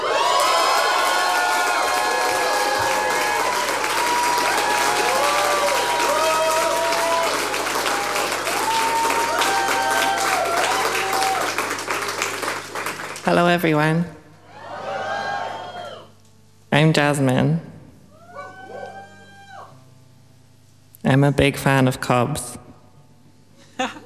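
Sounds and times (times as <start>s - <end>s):
audience cheering: 0.0s - 13.1s, 14.4s - 16.2s, 18.1s - 19.7s
audience applause: 0.0s - 13.3s
speech: 13.3s - 14.2s, 16.7s - 17.7s, 21.1s - 22.6s.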